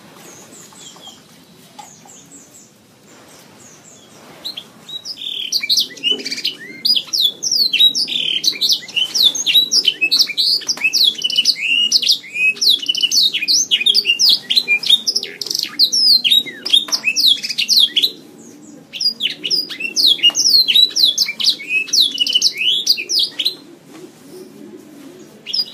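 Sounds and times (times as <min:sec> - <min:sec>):
Oriental magpie-robin singing high chirps and whistles: 0:03.8 - 0:18.1, 0:18.9 - 0:23.6, 0:25.5 - 0:25.7.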